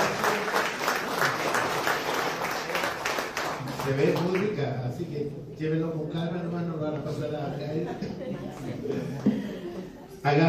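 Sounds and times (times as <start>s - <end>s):
audience applause: 0.0s - 4.5s
speech: 3.9s - 9.5s, 10.2s - 10.4s
laughter: 7.5s - 10.2s.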